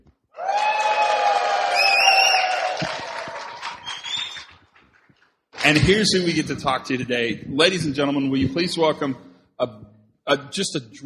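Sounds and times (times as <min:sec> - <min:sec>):
live audience cheering at the 2019 Qatar Process Safety Symposium: 0:00.4 - 0:04.8
speech: 0:05.7 - 0:11.0.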